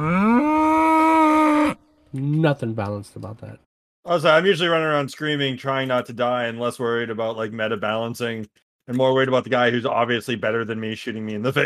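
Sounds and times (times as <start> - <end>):
bull mooing: 0.0 - 1.8
speech: 2.4 - 11.6.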